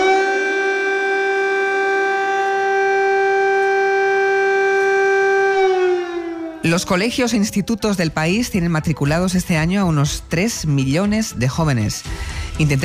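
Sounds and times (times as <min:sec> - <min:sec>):
civil defense siren wailing: 0:00.0 - 0:09.8
speech: 0:06.8 - 0:12.8.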